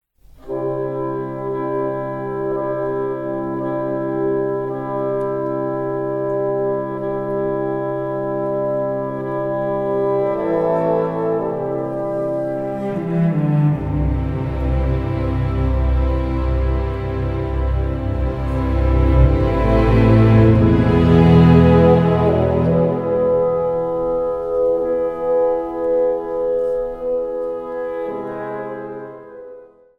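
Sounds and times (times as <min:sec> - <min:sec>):
piano: 0:00.1 - 0:29.9.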